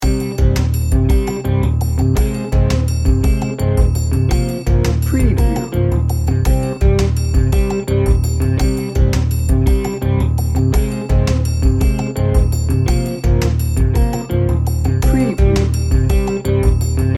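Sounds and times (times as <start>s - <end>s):
swampy tension music loop: 0.0s - 17.1s.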